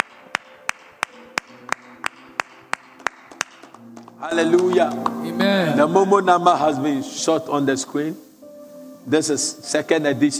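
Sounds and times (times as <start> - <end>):
hand clapping during a church gathering: 0.0 - 5.3
speech: 4.2 - 8.3, 9.0 - 10.3.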